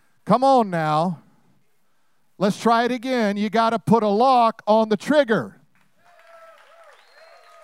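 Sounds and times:
speech: 0:00.3 - 0:01.2, 0:02.4 - 0:05.6
weak audience clapping: 0:05.7 - 0:07.6.

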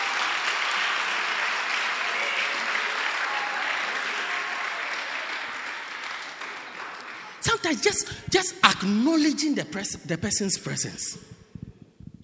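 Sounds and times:
audience applause: 0:00.0 - 0:07.4
speech: 0:07.6 - 0:11.4.

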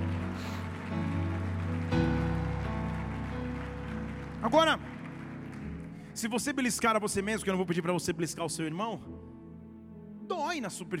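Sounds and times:
audience applauding: 0:00.0 - 0:07.0
speech: 0:04.4 - 0:04.9, 0:06.2 - 0:09.3, 0:10.3 - 0:10.9.

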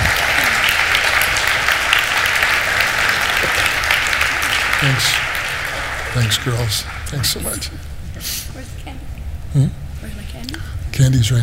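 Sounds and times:
audience clapping: 0:00.0 - 0:07.9
speech: 0:04.8 - 0:05.2, 0:06.1 - 0:08.4, 0:09.5 - 0:11.4.

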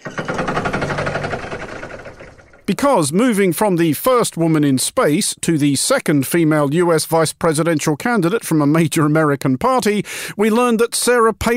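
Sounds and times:
grinding of gears sound effect: 0:00.0 - 0:02.8
speech: 0:02.7 - 0:11.5.

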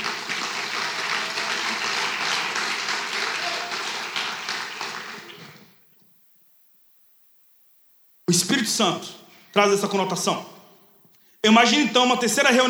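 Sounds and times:
audience applauding: 0:00.0 - 0:05.8
speech: 0:08.3 - 0:10.5, 0:11.4 - 0:12.6.

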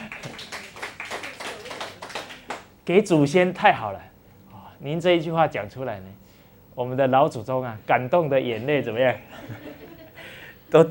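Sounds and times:
laughter: 0:00.0 - 0:00.8, 0:09.2 - 0:10.4
audience clapping: 0:00.0 - 0:02.8
speech: 0:02.9 - 0:04.1, 0:04.8 - 0:06.2, 0:06.8 - 0:09.9.

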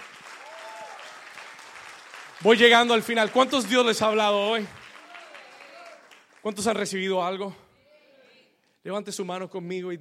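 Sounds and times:
audience applauding: 0:00.0 - 0:07.1
speech: 0:02.4 - 0:04.8, 0:06.4 - 0:07.6, 0:08.8 - 0:09.9.

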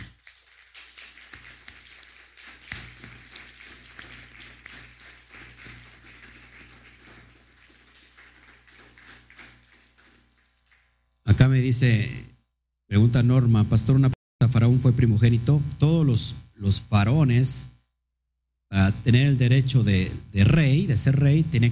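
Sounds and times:
audience applause: 0:00.0 - 0:10.9
speech: 0:11.4 - 0:12.2, 0:12.9 - 0:17.7, 0:18.7 - 0:21.7.

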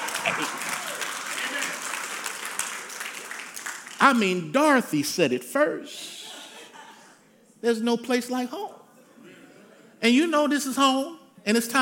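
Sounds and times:
audience applause: 0:00.0 - 0:04.4
speech: 0:00.2 - 0:00.6, 0:04.0 - 0:06.2, 0:07.6 - 0:08.8, 0:10.0 - 0:11.8.

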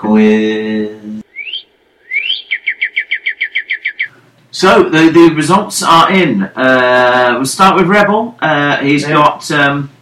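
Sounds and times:
speech: 0:00.0 - 0:01.0, 0:04.6 - 0:10.0
nightingale singing: 0:01.2 - 0:04.2.

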